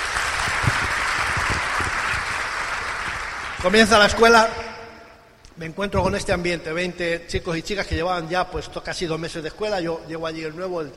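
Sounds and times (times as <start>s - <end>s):
audience applause: 0.0s - 4.2s
speech: 3.6s - 4.6s, 5.6s - 10.9s.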